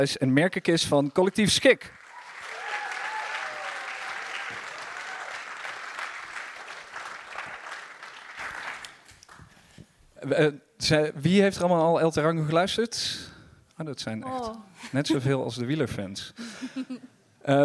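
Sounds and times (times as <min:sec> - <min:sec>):
speech: 0:00.0 - 0:02.0, 0:10.2 - 0:17.6
audience applause: 0:01.9 - 0:09.4
laughter: 0:16.4 - 0:17.1.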